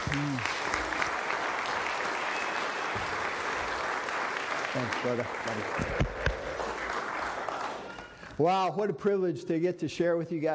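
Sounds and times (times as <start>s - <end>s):
audience applause welcoming a speaker at a Christian gathering: 0.0s - 8.3s
speech: 0.1s - 0.6s, 4.7s - 6.3s, 8.4s - 10.5s.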